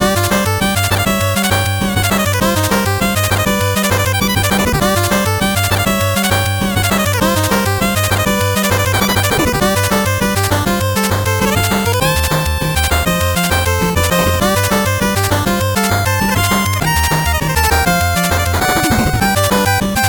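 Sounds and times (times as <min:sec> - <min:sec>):
fast 8-bit background music: 0:00.0 - 0:20.0.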